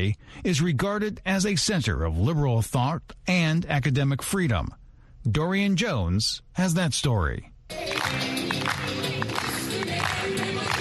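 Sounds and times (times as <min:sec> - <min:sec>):
speech: 0:00.0 - 0:08.4
Boğaziçi University professors clapping to music in celebration: 0:07.7 - 0:10.7.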